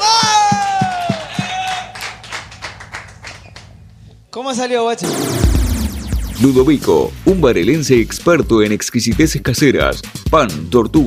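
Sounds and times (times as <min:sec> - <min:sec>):
audience clapping: 0:00.0 - 0:03.8
speech: 0:04.4 - 0:05.6, 0:06.4 - 0:11.0.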